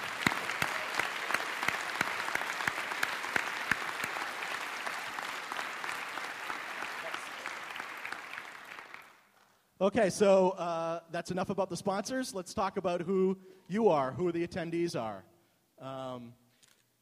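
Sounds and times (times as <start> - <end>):
conference audience clapping for the event sponsors: 0.0 - 9.4
speech: 9.8 - 16.4.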